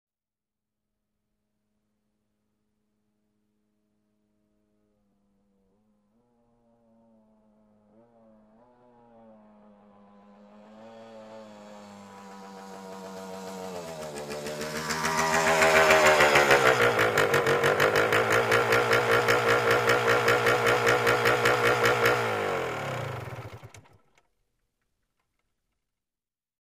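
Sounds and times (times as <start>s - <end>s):
motorcycle approaching and turning off: 4.1s - 24.2s.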